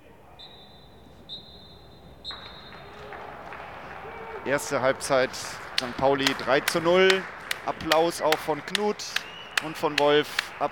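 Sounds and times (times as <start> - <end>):
referee's half-time whistle in stadium: 0.3 - 3.2, 8.9 - 10.7
speech: 4.5 - 10.7.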